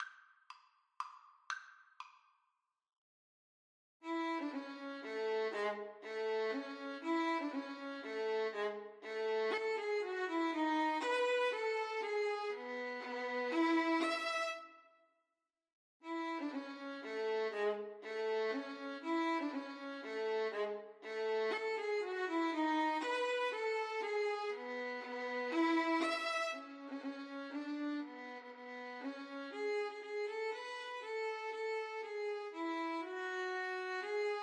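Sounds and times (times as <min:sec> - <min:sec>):
violin duet playing a minuet: 0:04.0 - 0:14.7, 0:16.0 - 0:34.4.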